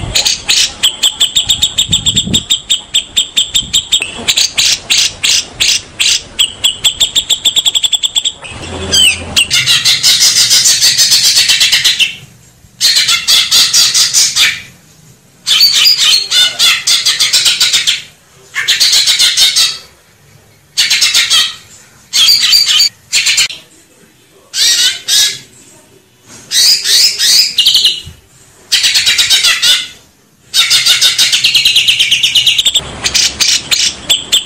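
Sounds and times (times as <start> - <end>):
Grey-cheeked bulbul song: 0.0 - 14.8, 15.4 - 23.6, 24.5 - 25.5, 26.5 - 34.4.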